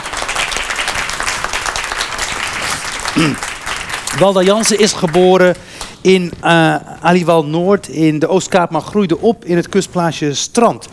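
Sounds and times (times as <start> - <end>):
audience applause: 0.0 - 5.9
speech: 3.2 - 3.5, 4.2 - 10.9.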